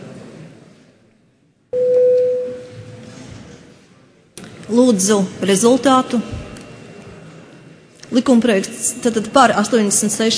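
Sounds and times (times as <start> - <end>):
room murmur and faint voices: 0.0 - 10.3
parliamentary voting electronic bell tone: 1.8 - 3.1
speech: 4.7 - 6.4, 8.2 - 10.3.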